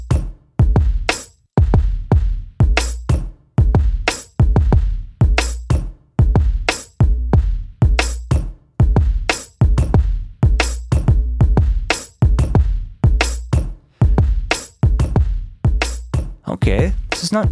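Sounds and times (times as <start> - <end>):
punchy drum sample playing: 0.0 - 17.5
speech: 17.3 - 17.5.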